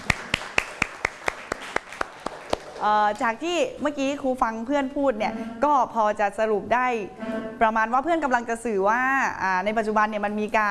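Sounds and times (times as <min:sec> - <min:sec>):
classroom applause: 0:00.0 - 0:02.8
speech: 0:02.8 - 0:10.6.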